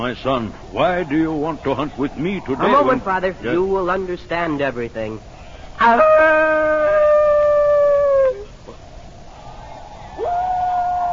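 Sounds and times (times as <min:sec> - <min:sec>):
speech: 0:00.0 - 0:06.9
person howling like a wolf: 0:05.8 - 0:08.6, 0:10.2 - 0:11.1.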